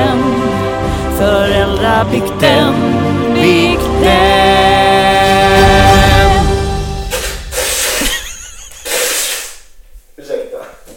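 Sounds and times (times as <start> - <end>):
sustained tonal music: 0.0 - 7.7
speech: 1.9 - 4.5
person blowing nose: 7.0 - 9.8.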